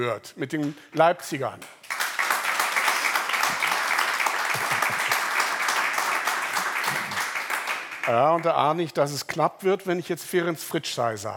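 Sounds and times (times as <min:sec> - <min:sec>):
speech: 0:00.0 - 0:01.8, 0:08.1 - 0:11.3
audience applauding to vote in an orchestral recordings contest: 0:01.8 - 0:08.6.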